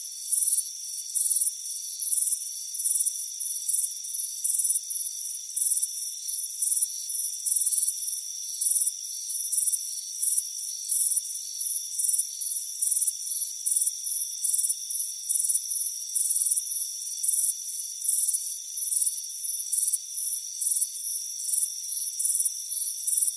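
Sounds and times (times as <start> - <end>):
many crickets chirping: 0.1 - 23.3.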